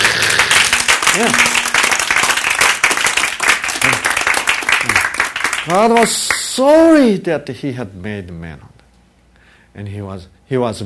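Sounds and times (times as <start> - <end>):
audience applause: 0.0 - 6.3
speech: 1.2 - 1.5, 5.6 - 8.8, 9.8 - 10.8.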